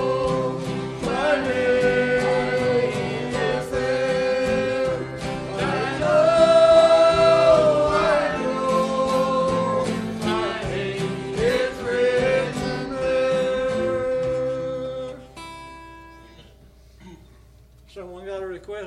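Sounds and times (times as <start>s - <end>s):
choir singing: 0.0s - 15.0s.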